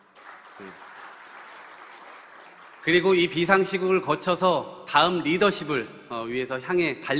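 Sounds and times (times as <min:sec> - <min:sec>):
audience applause: 0:00.0 - 0:03.4
speech: 0:00.6 - 0:00.9, 0:02.8 - 0:07.1.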